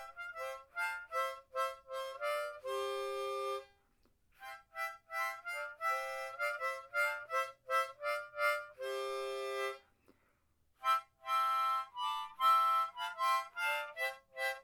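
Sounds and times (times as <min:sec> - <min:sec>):
harmonica in the key of G: 0:00.0 - 0:10.2, 0:10.8 - 0:14.6.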